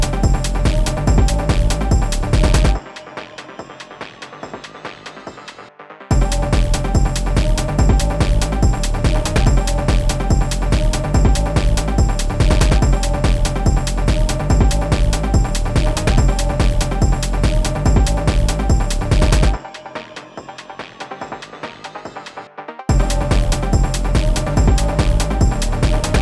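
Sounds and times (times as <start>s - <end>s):
jazzy phonk music: 0.0s - 3.2s, 6.1s - 19.6s, 22.9s - 26.1s.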